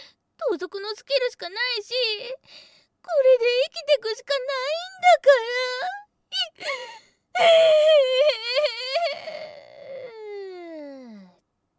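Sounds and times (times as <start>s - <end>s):
speech: 0.5s - 9.5s
girl crying and whimpering: 5.0s - 11.3s.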